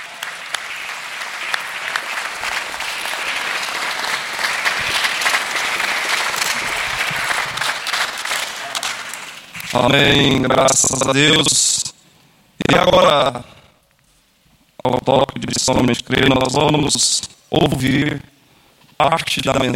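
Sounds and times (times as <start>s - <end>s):
audience applauding: 0.0s - 9.8s
speech: 9.8s - 11.7s, 12.7s - 13.6s, 14.8s - 18.3s, 19.0s - 19.7s.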